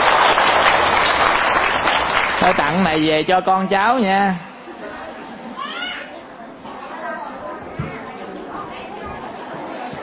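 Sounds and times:
audience applause: 0.0 - 3.2
speech: 2.5 - 4.5.

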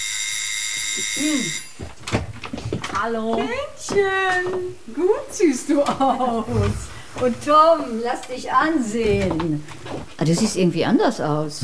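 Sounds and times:
electronic doorbell ringing: 0.0 - 1.8
speech: 1.0 - 2.0, 3.0 - 11.6.

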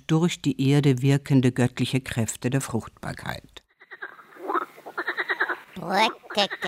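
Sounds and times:
speech: 0.1 - 3.6, 5.8 - 6.6
frog croaking: 3.7 - 6.6.

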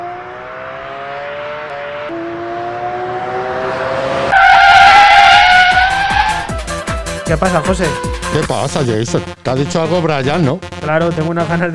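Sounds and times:
car arriving with skidding tires screeching: 0.0 - 6.8
car engine roaring: 0.0 - 6.8
speech: 7.3 - 11.7.

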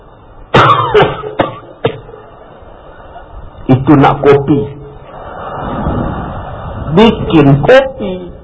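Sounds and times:
demonstrative coughing: 0.6 - 2.1
speech: 3.9 - 4.8, 6.9 - 8.2.

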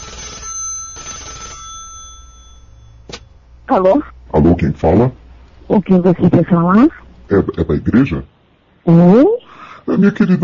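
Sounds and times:
telephone ringing on outgoing call to a church: 0.0 - 3.4
speech: 3.7 - 10.4.

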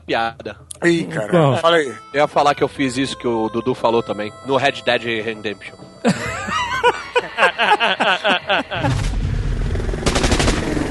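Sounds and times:
speech: 0.1 - 9.0
rhythmic laughter: 5.9 - 9.1
electric Gatling gun firing rapidly: 10.0 - 10.8.

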